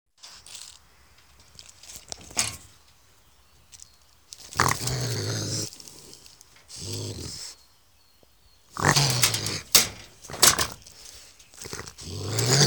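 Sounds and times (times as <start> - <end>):
raccoon growling: 2.0 - 2.7, 4.4 - 7.7, 8.6 - 12.6.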